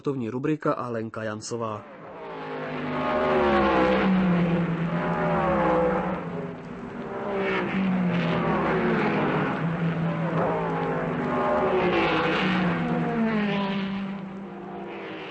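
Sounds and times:
speech: 0.0s - 2.0s
racing go-kart engines whining as they accelerate and brake: 1.8s - 15.2s.

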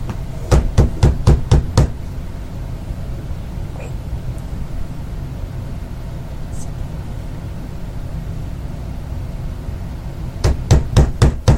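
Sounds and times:
knocking on a door: 0.5s - 2.0s, 10.4s - 11.5s.

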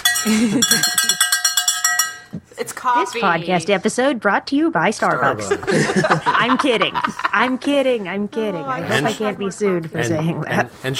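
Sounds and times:
bell ringing rapidly: 0.0s - 2.4s
laughter: 0.2s - 1.2s, 5.2s - 7.8s, 8.7s - 9.6s
speech: 0.2s - 1.2s, 2.3s - 10.9s.

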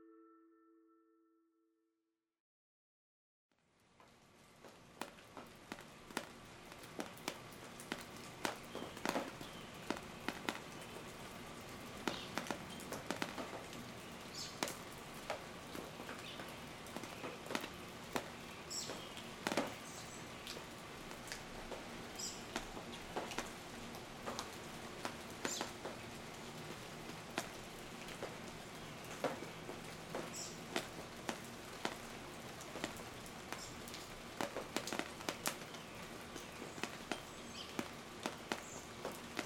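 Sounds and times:
rain dripping: 3.6s - 39.4s
birds: 8.5s - 14.8s, 15.6s - 20.7s, 28.5s - 30.7s, 35.3s - 39.0s.

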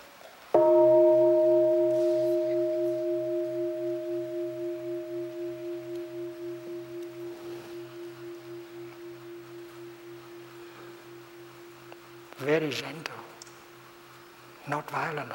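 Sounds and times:
meditation bell struck to full sound: 0.6s - 14.7s
speech: 12.6s - 13.1s, 14.7s - 15.3s.

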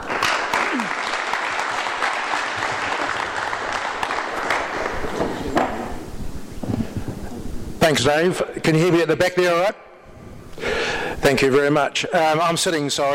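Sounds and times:
audience applause welcoming a speaker at a talk: 0.0s - 6.1s
speech: 7.9s - 9.8s, 11.2s - 13.1s.

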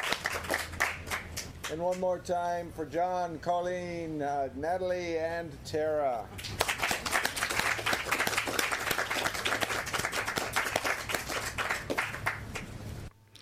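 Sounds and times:
audience applause for a poetry reading: 0.0s - 1.4s, 6.4s - 12.7s
speech: 1.7s - 6.5s.

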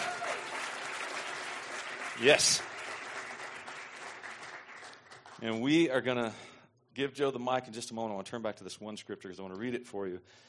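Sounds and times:
audience applause: 0.0s - 5.5s
speech: 2.2s - 2.7s, 5.4s - 10.4s.

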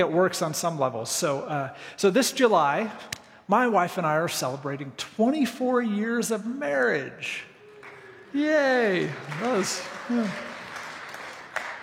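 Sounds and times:
speech: 0.0s - 7.5s, 8.3s - 10.5s
golf clap, light polite applause: 7.5s - 11.8s.

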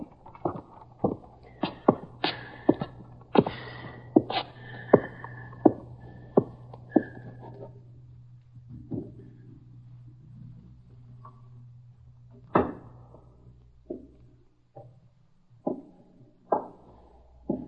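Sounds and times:
footsteps going down stairs: 0.0s - 7.8s, 8.6s - 9.6s, 15.6s - 17.6s.

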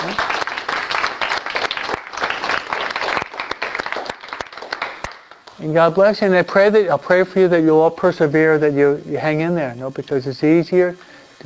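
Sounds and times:
audience applause: 0.0s - 5.4s
speech: 5.6s - 11.4s.

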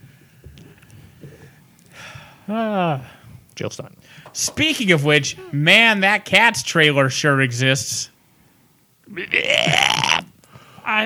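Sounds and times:
speech: 2.5s - 8.1s, 9.1s - 9.9s
man's voice imitating puking: 5.2s - 5.9s, 9.1s - 10.4s.

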